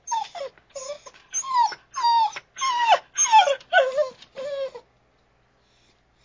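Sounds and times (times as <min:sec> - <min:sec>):
dog whimpering: 0:00.0 - 0:04.9.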